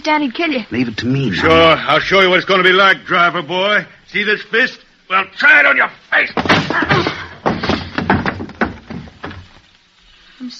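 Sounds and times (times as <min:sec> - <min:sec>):
speech: 0:00.0 - 0:07.2
wooden chair crashing into a man: 0:06.3 - 0:09.5.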